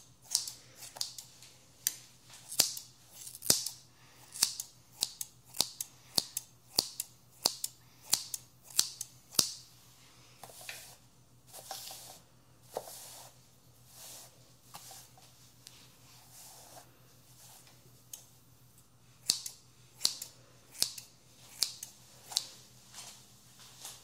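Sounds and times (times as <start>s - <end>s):
scissors snipping hair: 0.2s - 9.6s, 19.2s - 22.5s
brushing rustles: 9.8s - 18.1s.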